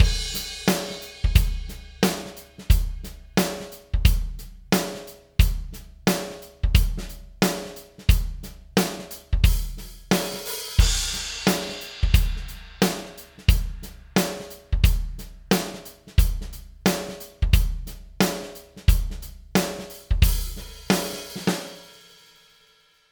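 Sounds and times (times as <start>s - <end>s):
dry drums: 0.0s - 22.0s.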